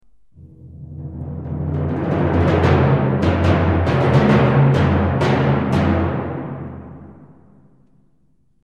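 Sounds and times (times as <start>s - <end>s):
timpani: 0.0s - 8.5s.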